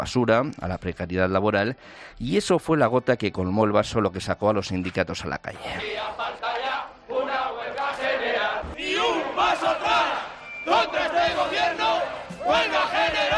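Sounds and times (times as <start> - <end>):
speech: 0.0 - 6.5
protest crowd chanting: 5.6 - 13.3.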